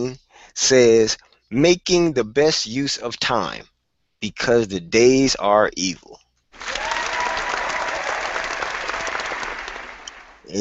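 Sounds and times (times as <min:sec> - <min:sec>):
speech: 0:00.0 - 0:06.9
studio audience applause: 0:06.6 - 0:10.5.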